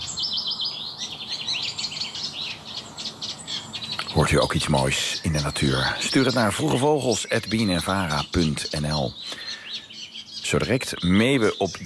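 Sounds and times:
reed warbler singing in a vegetable garden in Laren, Gelderland: 0.0s - 11.8s
speech: 4.1s - 9.4s, 10.5s - 11.8s.

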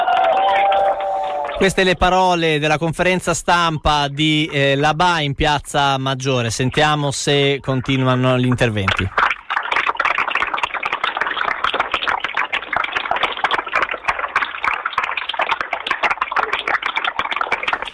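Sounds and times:
applause from a crowd in a square: 0.0s - 2.4s, 9.2s - 17.9s
speech: 1.6s - 9.2s.

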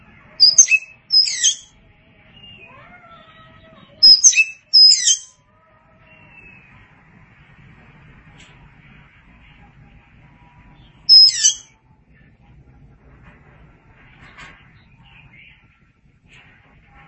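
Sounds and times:
Oriental magpie-robin whistle and twitter: 0.4s - 1.7s, 4.0s - 5.3s, 11.0s - 11.7s.

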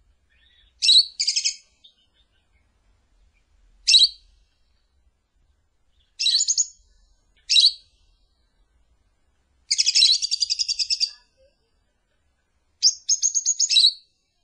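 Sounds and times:
lovebird giving shrill high chirps and trills as a lure call: 0.2s - 4.8s, 5.5s - 8.8s, 9.7s - 11.5s, 12.8s - 14.2s.

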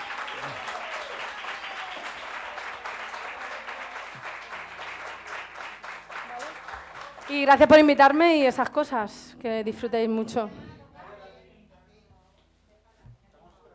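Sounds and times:
voices and cheers: 0.0s - 3.8s
audience applause at a concert: 0.0s - 8.0s
speech: 7.3s - 10.6s.

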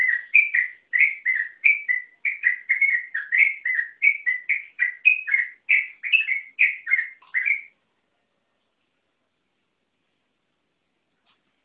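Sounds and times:
yellow-vented bulbul song of warbled whistled notes: 0.0s - 7.8s.

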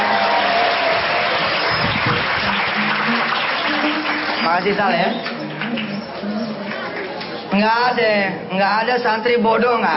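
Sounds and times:
audience applause: 0.0s - 7.2s
speech: 4.6s - 5.9s, 7.6s - 9.9s.

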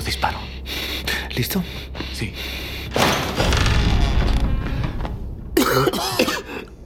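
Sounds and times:
speech: 0.1s - 0.5s, 1.4s - 3.2s, 5.8s - 6.3s
storeroom door forced open with scraping and heavy thudding: 2.9s - 5.2s.

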